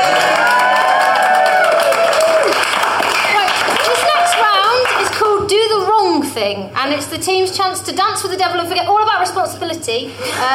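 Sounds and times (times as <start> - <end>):
audience applause: 0.0 - 5.3
speech: 6.5 - 10.5.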